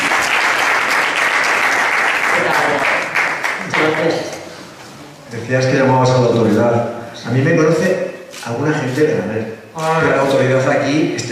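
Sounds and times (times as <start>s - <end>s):
audience applause: 0.0s - 4.2s
speech: 5.5s - 11.3s.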